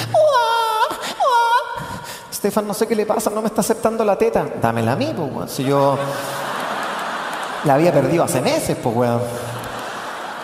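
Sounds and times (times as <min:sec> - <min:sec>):
person imitating baby crying: 0:00.0 - 0:02.1
speech: 0:02.4 - 0:06.4, 0:07.6 - 0:09.5
laughter: 0:05.6 - 0:10.4.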